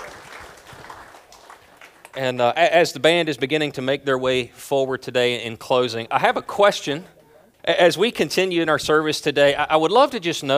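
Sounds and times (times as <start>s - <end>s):
audience applause: 0.0s - 2.2s
speech: 2.2s - 10.5s.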